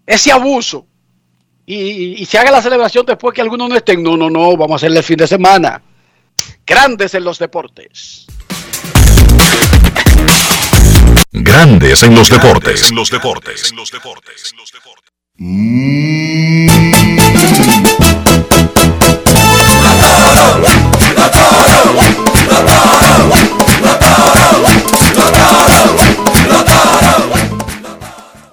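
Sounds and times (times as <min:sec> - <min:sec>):
speech: 0:00.1 - 0:00.9, 0:01.7 - 0:09.8, 0:11.4 - 0:18.8
steady pounding drumbeat: 0:08.3 - 0:11.2, 0:16.7 - 0:28.2
baseball fans chanting in unison in stadium: 0:19.7 - 0:28.5.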